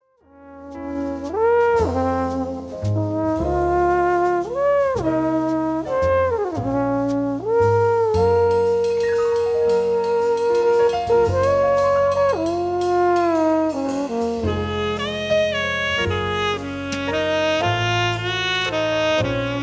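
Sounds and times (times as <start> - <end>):
cruise blues music: 0.7 - 19.6.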